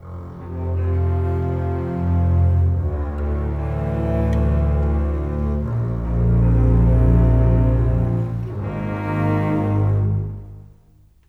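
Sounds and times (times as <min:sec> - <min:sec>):
bass cello: 0:00.0 - 0:11.2.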